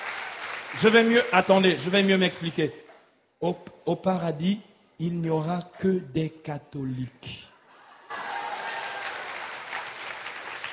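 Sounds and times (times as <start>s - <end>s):
audience applause: 0.0s - 2.0s, 7.9s - 10.7s
speech: 0.7s - 2.8s, 3.4s - 7.4s.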